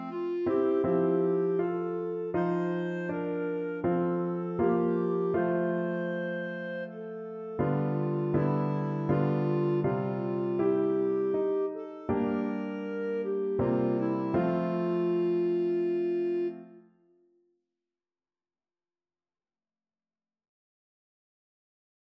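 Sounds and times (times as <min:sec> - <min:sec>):
clarinet playing a nocturne: 0:00.0 - 0:17.2.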